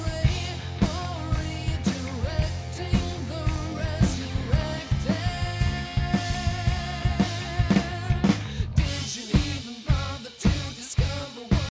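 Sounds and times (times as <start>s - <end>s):
rolling bass: 0.0s - 11.2s.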